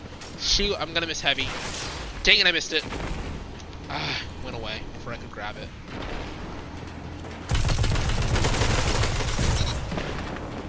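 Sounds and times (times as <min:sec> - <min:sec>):
speech: 0:00.6 - 0:03.1, 0:03.9 - 0:06.1
automatic gunfire in the video game Destiny 2: 0:07.5 - 0:09.8.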